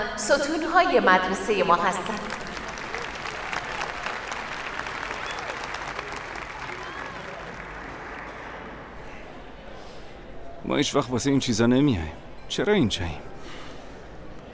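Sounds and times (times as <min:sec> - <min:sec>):
speech: 0:00.0 - 0:02.4, 0:10.7 - 0:13.3
audience applause: 0:02.0 - 0:09.0.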